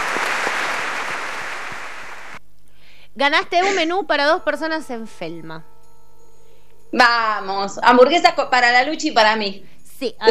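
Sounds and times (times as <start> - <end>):
applause: 0.0 - 2.4
speech: 3.2 - 5.7, 6.9 - 10.2.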